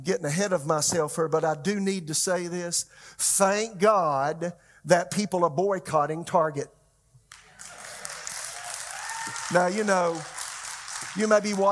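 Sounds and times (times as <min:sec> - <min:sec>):
speech: 0:00.0 - 0:06.8, 0:09.5 - 0:10.4, 0:11.2 - 0:11.7
audience clapping: 0:07.3 - 0:11.7.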